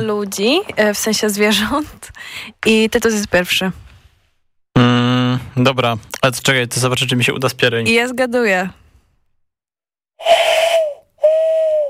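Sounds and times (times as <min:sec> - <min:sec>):
speech: 0:00.0 - 0:03.8, 0:05.6 - 0:08.8, 0:10.2 - 0:10.7
person imitating owl hoots: 0:10.2 - 0:11.8.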